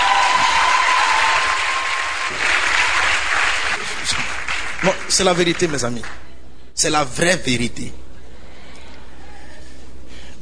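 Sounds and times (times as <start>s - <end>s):
church congregation applauding during a French-language service: 0.0s - 6.3s
speech: 4.8s - 8.0s.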